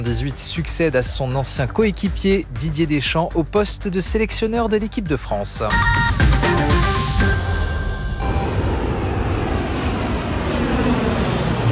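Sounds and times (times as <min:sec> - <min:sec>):
speech: 0:00.0 - 0:06.6
Canadair firefighting plane flying overhead: 0:07.4 - 0:11.6.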